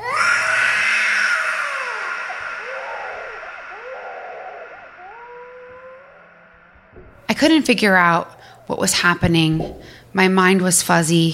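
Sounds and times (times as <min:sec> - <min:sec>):
person screaming: 0:00.0 - 0:06.9
speech: 0:07.4 - 0:11.3.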